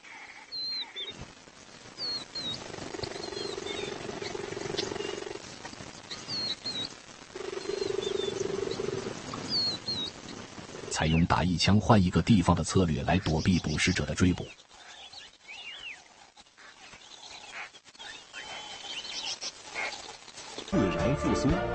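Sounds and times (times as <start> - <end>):
cheetah purring: 2.5 - 5.4, 7.3 - 9.2
speech: 11.0 - 14.7, 21.2 - 21.7.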